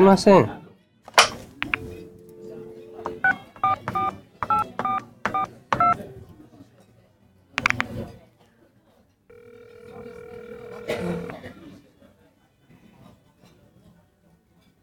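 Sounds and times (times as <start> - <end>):
clunky phone handling noise: 1.1 - 2.0, 7.6 - 7.9
telephone keypad tones dialing a number: 1.6 - 6.0, 7.6 - 7.9, 9.3 - 11.4.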